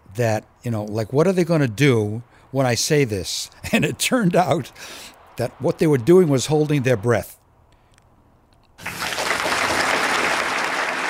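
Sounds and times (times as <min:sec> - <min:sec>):
speech: 0:00.2 - 0:07.4
audience clapping: 0:08.8 - 0:11.0.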